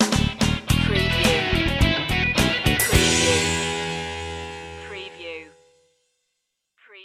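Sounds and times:
funk rock sting: 0.0 - 5.0.

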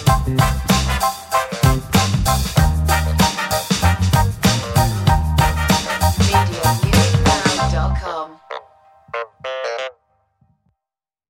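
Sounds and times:
spicy funky groovy beat: 0.0 - 8.0.

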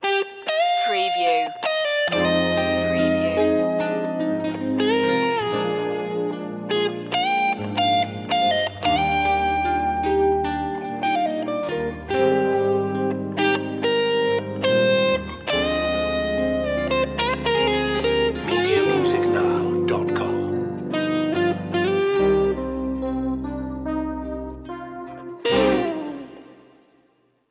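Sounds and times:
mediterranean guitar: 0.0 - 27.3.

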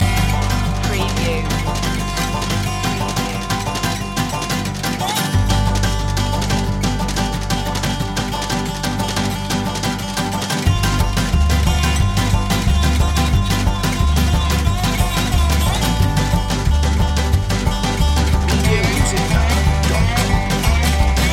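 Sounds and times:
hillbilly hoedown music: 0.0 - 21.3.

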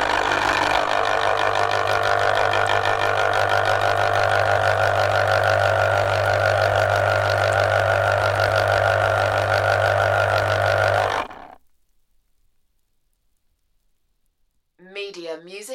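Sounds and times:
fruit juice extractor running: 0.0 - 11.6.

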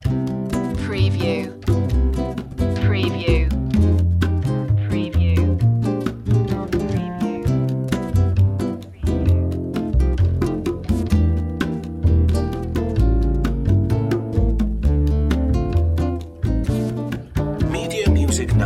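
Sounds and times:
bossa nova music: 0.0 - 18.6.

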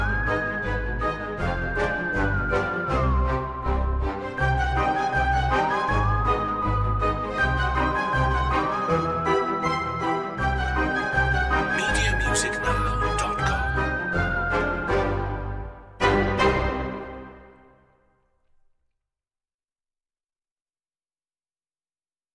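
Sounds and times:
spooky adventure music without percussion: 0.0 - 17.8.

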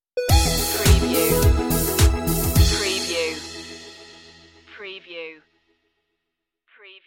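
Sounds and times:
music stinger: 0.2 - 4.7.

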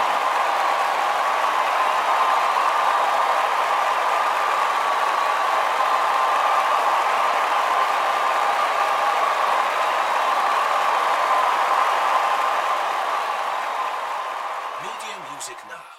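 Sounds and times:
sports stadium crowd cheering: 0.0 - 15.9.

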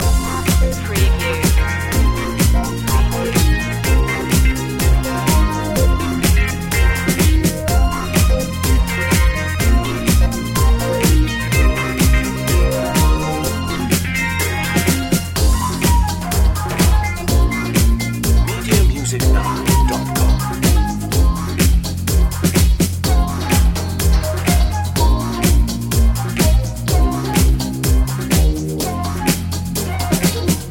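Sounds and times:
music loop: 0.0 - 30.6.

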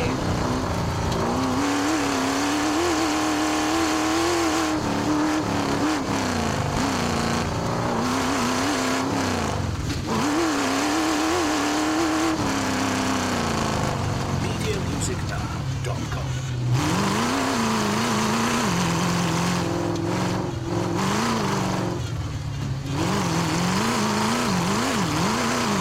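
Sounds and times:
Chevy V8 hot rod engine driving around: 0.0 - 25.7.

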